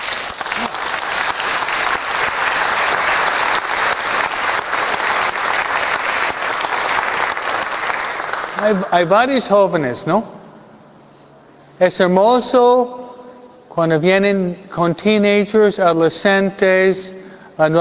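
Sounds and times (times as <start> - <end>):
audience applause: 0.0 - 8.9
speech: 8.6 - 10.4, 11.8 - 13.0, 13.8 - 17.7.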